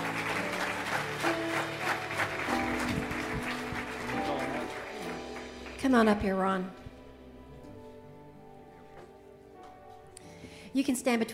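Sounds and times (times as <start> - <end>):
audience applause: 0.0 - 6.2
speech: 5.8 - 6.8, 10.8 - 11.3.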